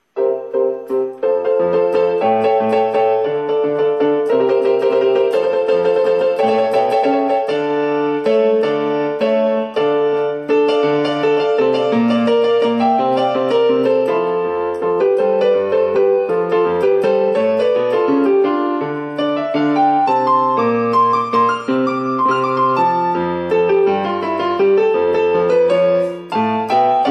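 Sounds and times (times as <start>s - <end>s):
piano improvisation: 0.0s - 27.0s.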